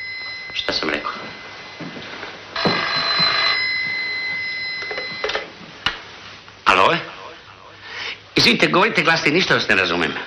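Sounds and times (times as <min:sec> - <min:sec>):
telephone bell ringing: 0:00.0 - 0:05.6
speech: 0:08.4 - 0:10.2.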